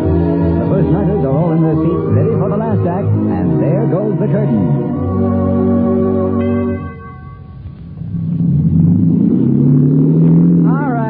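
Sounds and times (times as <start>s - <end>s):
sustained chord: 0.0s - 8.4s
boat engine drone: 0.0s - 11.0s.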